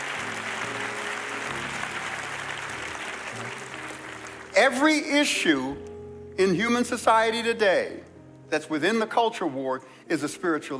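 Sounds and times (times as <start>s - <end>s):
audience hand clapping: 0.0s - 5.0s
speech: 4.6s - 10.7s.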